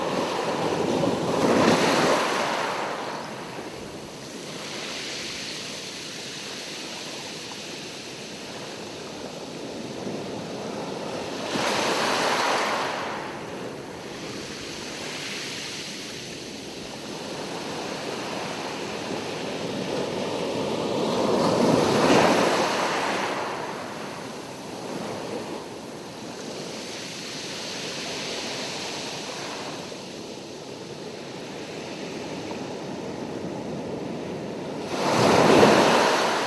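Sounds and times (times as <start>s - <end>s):
beach ambience in Fiji: 0.0s - 36.4s.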